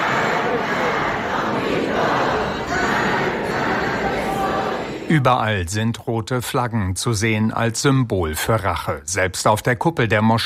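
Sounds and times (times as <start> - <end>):
crowd chanting slogans in a crowded subway station: 0.0 - 5.2
speech: 5.1 - 10.4.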